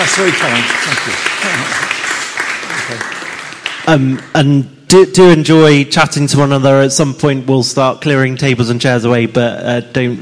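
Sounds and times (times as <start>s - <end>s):
audience applause: 0.0s - 4.3s
speech: 0.1s - 2.0s, 2.9s - 3.2s, 3.9s - 10.2s.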